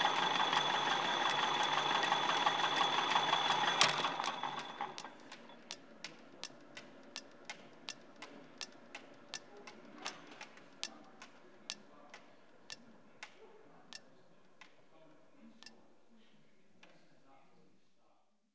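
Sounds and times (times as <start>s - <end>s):
cop and spool winding machine running: 0.0s - 11.0s.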